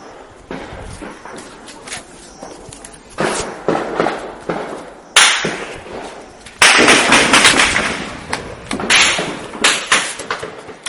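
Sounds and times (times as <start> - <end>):
weapons fire at night over Mrauk-U town in Rakhine State: 3.2 - 10.8.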